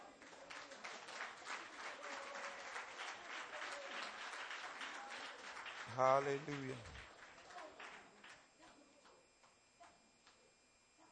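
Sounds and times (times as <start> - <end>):
audience clapping: 0.0 - 8.4
speech: 5.9 - 7.0.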